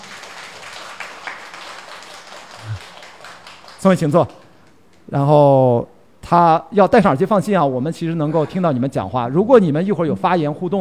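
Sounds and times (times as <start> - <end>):
audience applause: 0.0 - 4.6
speech: 3.8 - 4.4, 5.1 - 10.7.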